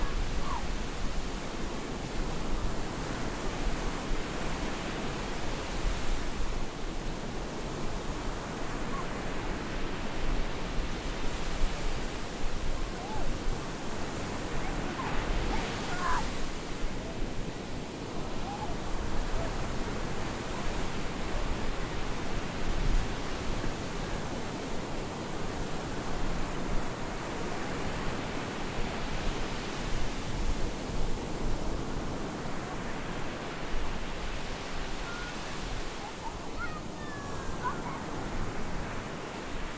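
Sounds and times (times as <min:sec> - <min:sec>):
beach ambience in Cyprus: 0:00.0 - 0:39.7.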